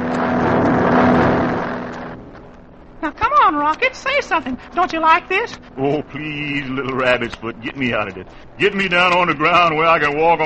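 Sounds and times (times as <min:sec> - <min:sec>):
airplane engine in flight: 0:00.0 - 0:10.4
speech: 0:03.6 - 0:10.4.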